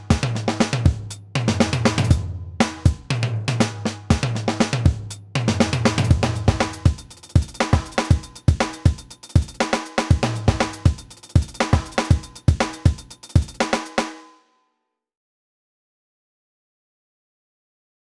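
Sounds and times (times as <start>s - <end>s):
funk drum kit playing at 120 BPM: 0.0s - 14.1s.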